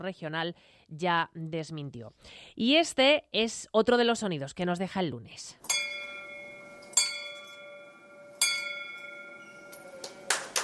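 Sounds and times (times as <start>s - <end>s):
speech: 0.0s - 6.0s
small hospital bell ringing: 5.7s - 10.3s.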